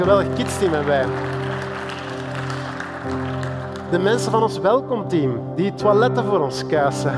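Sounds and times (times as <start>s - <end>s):
speech: 0.0s - 1.4s, 3.9s - 7.1s
audience applause: 0.0s - 4.3s.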